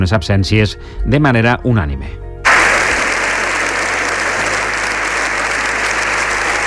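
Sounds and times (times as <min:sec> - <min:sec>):
speech: 0:00.0 - 0:02.2
parliament standing ovation applause: 0:02.5 - 0:06.6.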